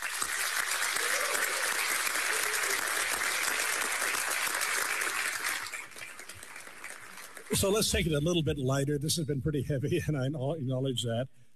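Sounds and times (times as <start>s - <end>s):
crowd applauding: 0.0s - 8.4s
speech: 7.5s - 11.3s.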